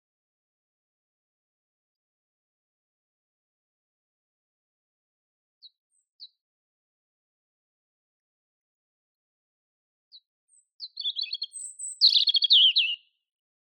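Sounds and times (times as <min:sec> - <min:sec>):
European robin Erithacus rubecula singing: 0:05.6 - 0:06.4, 0:10.1 - 0:13.2.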